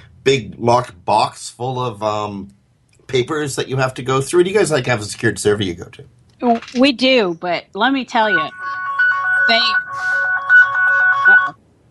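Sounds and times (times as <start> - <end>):
speech: 0.2 - 8.8, 9.5 - 9.8
phone ringtone: 8.1 - 11.6.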